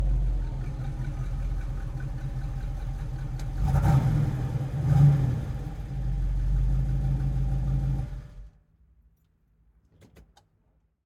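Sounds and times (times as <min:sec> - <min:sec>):
1970 Ford Mustang Mach 1 V8 fast start accelerating away: 0:00.0 - 0:08.5
1970 Ford Mustang Mach 1 V8 engine revving: 0:03.6 - 0:08.4.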